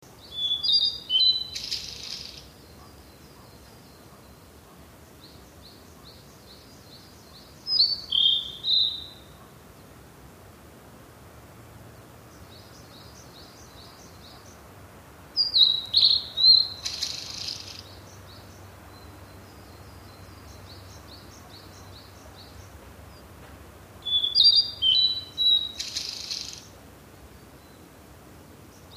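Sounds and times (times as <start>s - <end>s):
blue-and-white flycatcher singing: 0.2s - 4.4s, 5.2s - 9.4s, 15.4s - 22.8s, 24.0s - 26.8s.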